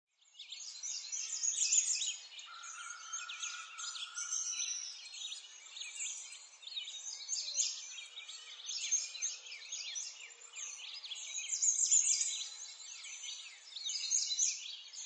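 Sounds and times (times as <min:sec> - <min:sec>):
birds chorusing in a forest: 0:00.9 - 0:14.1.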